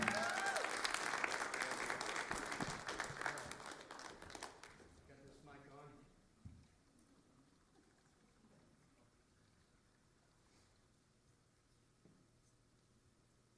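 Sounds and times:
audience applause: 0.0s - 4.8s.

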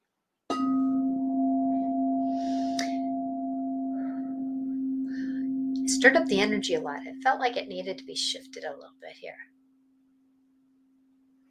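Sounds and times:
singing bowl struck and ringing: 0.5s - 8.4s
speech: 6.0s - 9.6s.

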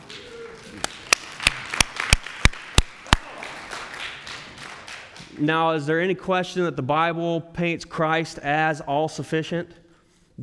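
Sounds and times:
audience clapping: 0.0s - 5.5s
speech: 5.4s - 9.8s.

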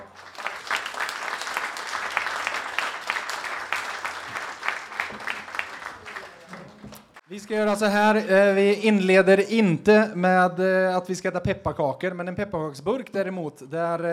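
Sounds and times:
applause: 0.0s - 7.2s
speech: 7.3s - 14.1s.

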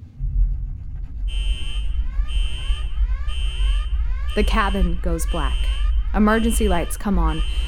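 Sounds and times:
heavy low rumble: 0.0s - 7.6s
shrill alarm klaxons blaring in repeated pulses: 1.3s - 7.6s
speech: 4.4s - 7.6s.

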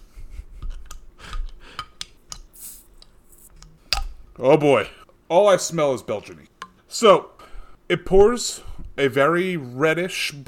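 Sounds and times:
beer bottle opening hiss: 1.3s - 3.6s
speech: 4.4s - 7.3s, 7.9s - 10.4s.

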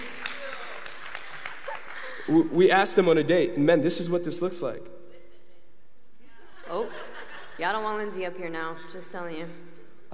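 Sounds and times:
audience clapping: 0.0s - 2.8s
speech: 2.3s - 5.0s, 7.6s - 9.7s
laughter: 6.3s - 8.0s.

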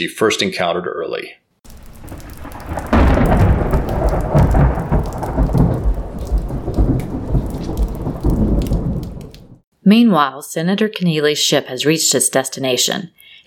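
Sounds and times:
speech: 0.0s - 1.4s, 9.9s - 13.4s
steady hissing rain: 1.6s - 9.6s
deep thunderclap and rolling thunder: 1.7s - 9.6s.

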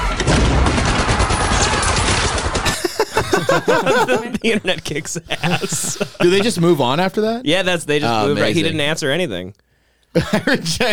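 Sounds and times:
machine-gun fusillade from the Inglourious Basterds theater fire scene: 0.0s - 3.0s
laughter: 2.6s - 7.1s, 10.2s - 10.9s
speech: 3.6s - 10.9s.

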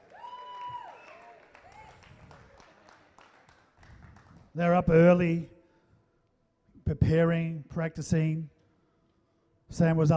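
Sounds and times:
church audience applauding and cheering: 0.0s - 4.5s
speech: 4.6s - 5.6s, 7.0s - 8.5s, 9.7s - 10.1s.

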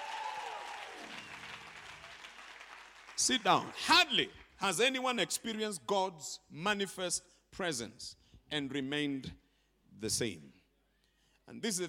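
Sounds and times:
audience clapping hands: 0.0s - 4.6s
speech: 3.2s - 9.4s, 10.0s - 10.6s, 11.5s - 11.8s.

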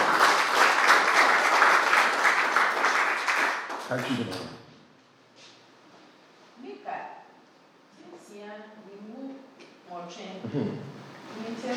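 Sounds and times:
audience clapping hands: 0.0s - 4.6s
speech: 3.9s - 4.6s, 10.0s - 11.7s.

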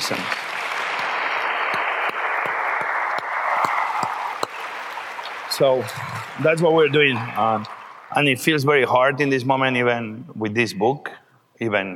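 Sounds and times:
audience round of applause: 0.0s - 9.4s
speech: 5.6s - 11.9s.

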